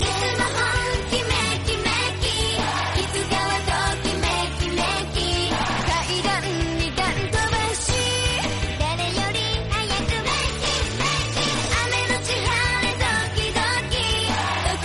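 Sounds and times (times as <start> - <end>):
cute Japanese song: 0.0 - 14.8.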